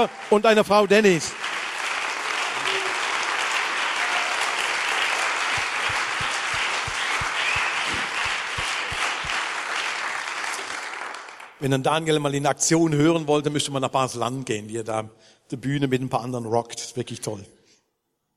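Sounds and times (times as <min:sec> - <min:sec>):
speech: 0:00.0 - 0:01.4, 0:11.6 - 0:17.6
audience applause: 0:00.0 - 0:11.6.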